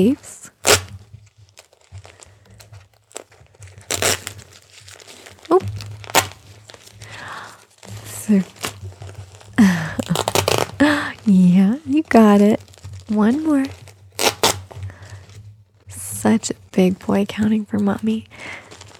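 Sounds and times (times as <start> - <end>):
speech: 0.0 - 0.4, 8.3 - 8.6, 12.2 - 13.8, 16.3 - 18.4
crinkly disposable diaper crinkling and rustling during a diaper change: 0.0 - 18.9.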